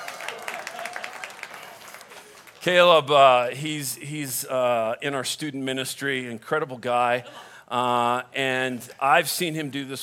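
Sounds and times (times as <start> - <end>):
audience applause greeting a guest on stage: 0.0 - 2.9
speech: 2.6 - 10.0.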